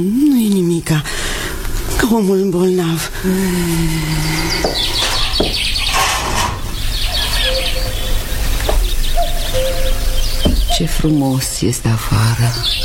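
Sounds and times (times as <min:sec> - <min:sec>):
speech: 0:00.0 - 0:01.4, 0:02.0 - 0:05.7, 0:10.8 - 0:12.8
chorus of birds chirping and singing: 0:02.7 - 0:12.8
hooting cuckoo calls: 0:03.2 - 0:11.3, 0:12.1 - 0:12.8.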